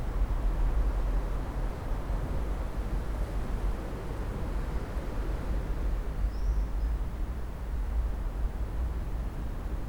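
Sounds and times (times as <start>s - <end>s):
gentle wind over sand dunes: 0.0s - 9.8s.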